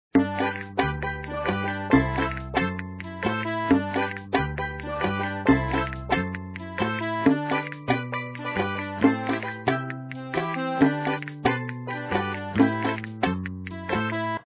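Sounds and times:
title theme music: 0.2 - 14.3.

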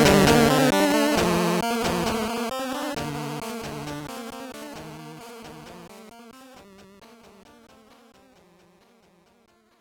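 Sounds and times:
background music: 0.0 - 6.3.

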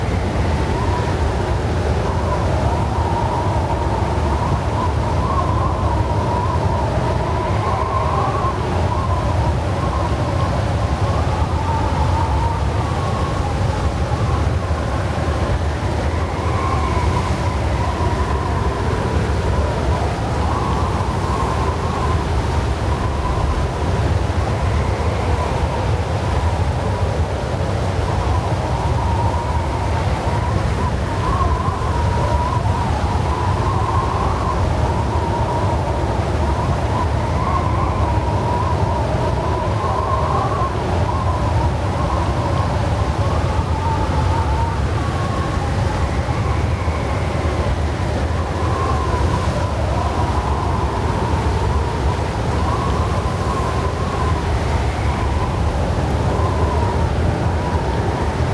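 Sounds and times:
storm through an open window: 0.0 - 58.5.

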